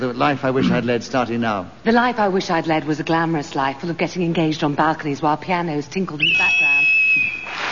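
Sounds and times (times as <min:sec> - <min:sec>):
speech: 0:00.0 - 0:07.3
deteriorating BBC whistle: 0:06.2 - 0:07.6.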